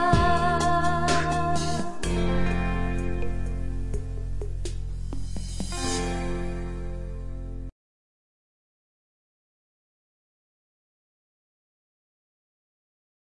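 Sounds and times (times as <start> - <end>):
cover song: 0.0 - 7.0.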